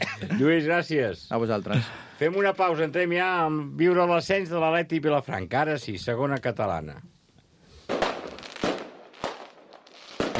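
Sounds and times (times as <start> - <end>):
speech: 0.3 - 7.2
firecrackers exploding in an advert for a pyrotechnics shop: 7.8 - 10.3.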